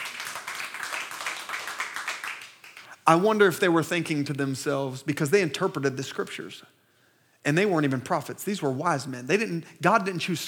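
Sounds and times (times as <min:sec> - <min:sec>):
audience hand clapping: 0:00.0 - 0:02.9
speech: 0:03.1 - 0:06.8, 0:07.4 - 0:10.4.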